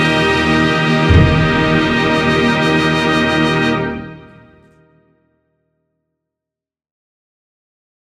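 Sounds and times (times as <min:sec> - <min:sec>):
fanfare: 0:00.0 - 0:04.4.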